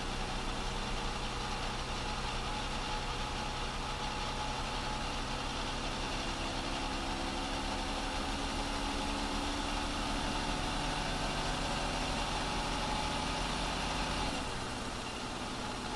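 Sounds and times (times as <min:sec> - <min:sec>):
6x6 armoured vehicle engine at steady rpms heard onboard: 0:00.0 - 0:15.9.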